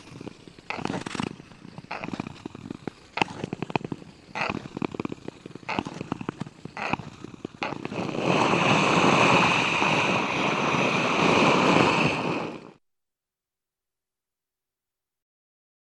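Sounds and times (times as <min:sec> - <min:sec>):
ice skates: 0:00.0 - 0:12.8.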